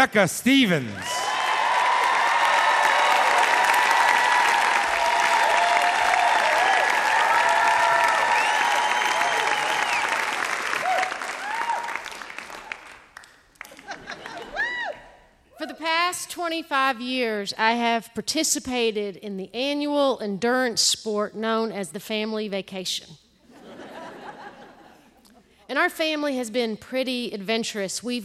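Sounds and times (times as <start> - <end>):
speech: 0.0 - 1.3, 16.5 - 23.2, 25.7 - 28.2
audience applause for a storyteller: 1.0 - 14.9
whoops and whistles: 8.1 - 10.2
laughter: 13.6 - 14.9, 23.5 - 25.6.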